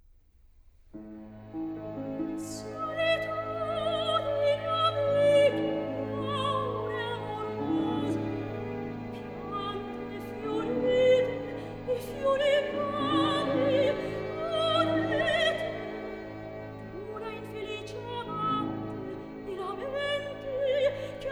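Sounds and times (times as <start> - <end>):
opera recitative singing: 2.4 - 21.3.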